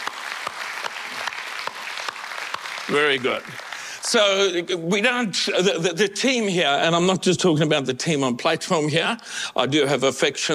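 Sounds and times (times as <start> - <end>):
audience applause: 0.0 - 4.5
speech: 2.9 - 10.5.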